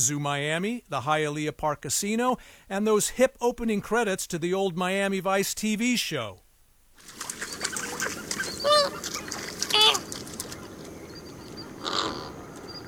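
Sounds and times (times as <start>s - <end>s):
speech: 0.0s - 6.4s
flamingo flock murmur: 7.0s - 12.8s
flamingo honking calls: 7.3s - 12.8s.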